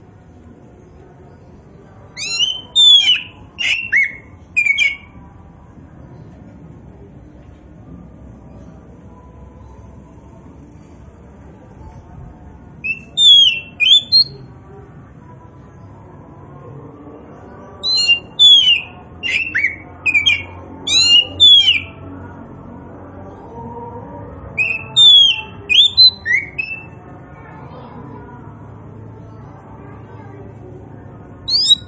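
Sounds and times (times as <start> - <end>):
Oriental magpie-robin whistling: 2.2 - 5.1, 12.8 - 14.4, 17.8 - 21.9, 24.6 - 27.0, 31.5 - 31.8.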